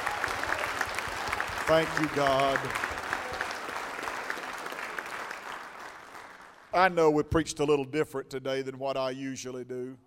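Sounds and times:
audience round of applause: 0.0 - 6.7
speech: 1.7 - 2.9, 6.8 - 10.0.

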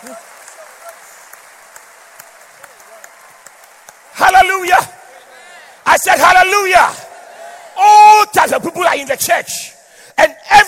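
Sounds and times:
speech: 0.0 - 0.3, 4.2 - 5.0, 5.9 - 7.0, 7.8 - 10.6
audience clapping: 0.0 - 7.6.

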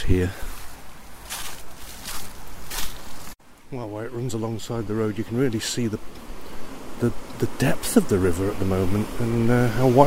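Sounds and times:
speech: 0.0 - 0.5, 3.7 - 6.3, 7.0 - 10.0
footsteps crunching on frosty leaves: 0.2 - 3.4.

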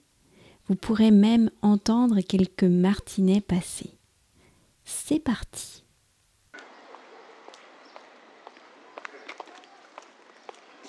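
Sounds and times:
quiet street background: 0.0 - 10.8
speech: 0.7 - 4.0, 4.9 - 5.8
two people's footsteps walking along a sunny street toward the market: 7.5 - 10.8.

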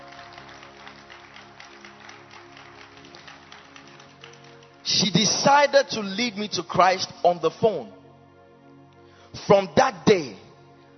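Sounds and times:
crowd clapping: 0.0 - 4.9
speech: 4.9 - 8.0, 9.5 - 10.4.

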